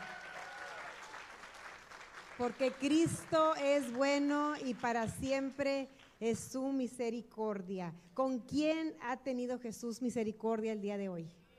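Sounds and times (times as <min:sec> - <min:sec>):
faint cheer or whistle: 0:00.0 - 0:01.1
crowd applauding: 0:00.0 - 0:04.8
speech: 0:02.4 - 0:11.4.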